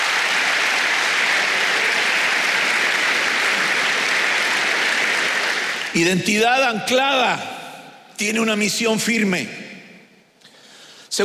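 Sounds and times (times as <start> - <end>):
audience clapping: 0.0 - 6.8
speech: 6.0 - 7.5, 8.2 - 9.6.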